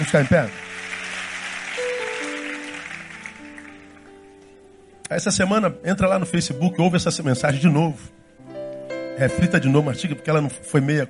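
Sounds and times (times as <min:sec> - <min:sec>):
speech: 0:00.0 - 0:00.7, 0:05.1 - 0:08.2, 0:09.2 - 0:11.0
crowd clapping: 0:00.0 - 0:04.2
soft keyboard chords: 0:00.0 - 0:11.0.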